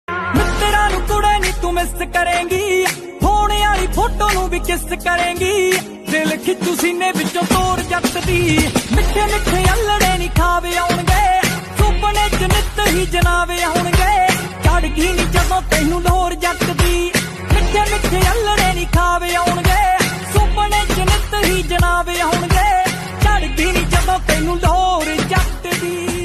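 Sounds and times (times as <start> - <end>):
Desi Punjabi ringtone music: 0.1 - 26.2.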